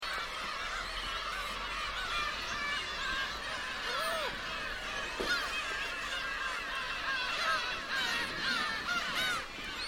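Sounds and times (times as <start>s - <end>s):
gull colony mewing on a seagull island in Hachinohe Japan: 0.0s - 9.8s.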